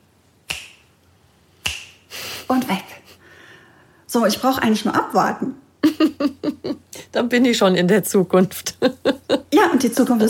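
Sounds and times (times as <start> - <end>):
finger snap: 0.4 - 0.9, 1.6 - 2.1
speech: 2.5 - 3.0, 4.1 - 10.2
laughter: 5.8 - 6.8, 8.5 - 9.6.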